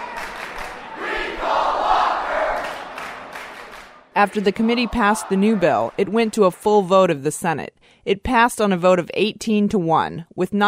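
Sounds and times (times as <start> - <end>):
large crowd of protesters yelling and chanting: 0.0 - 6.4
speech: 4.2 - 10.6.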